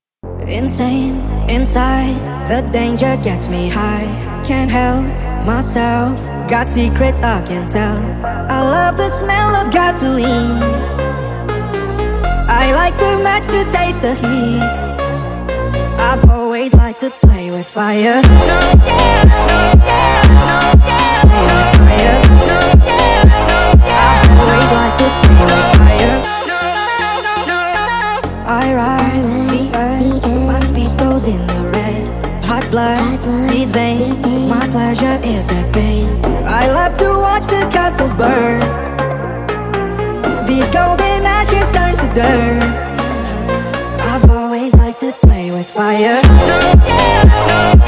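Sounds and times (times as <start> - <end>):
sped-up phonk music: 0.2 - 47.8.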